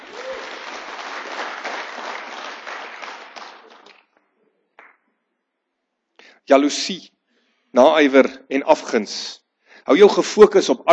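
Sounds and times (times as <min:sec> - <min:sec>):
audience applause and hand clapping: 0:00.0 - 0:04.1
speech: 0:06.5 - 0:07.2, 0:07.8 - 0:10.9.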